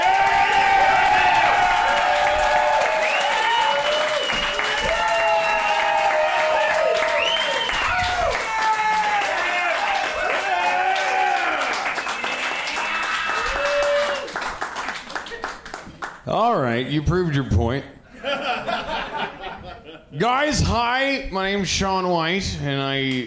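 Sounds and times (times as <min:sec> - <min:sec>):
audience cheering and whooping: 0:00.0 - 0:14.5
audience applause for a stand-up comedian taking the stage: 0:00.0 - 0:16.2
speech: 0:16.8 - 0:19.0, 0:20.2 - 0:23.2
laughter: 0:18.1 - 0:20.2.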